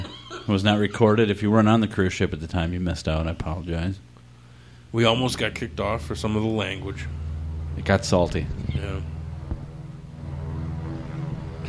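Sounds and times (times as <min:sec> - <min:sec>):
speech: 0:00.5 - 0:04.1, 0:04.9 - 0:07.2, 0:07.8 - 0:09.2
propeller airplane droning overhead: 0:04.4 - 0:11.6.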